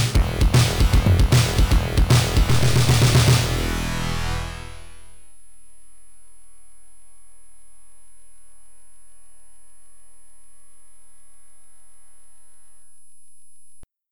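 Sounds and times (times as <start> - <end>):
swamp game over music: 0.1 - 5.1.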